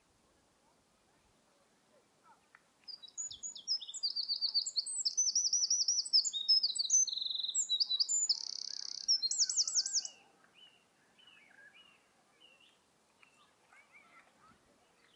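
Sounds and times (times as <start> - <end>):
Eurasian wren singing: 2.9 - 10.7.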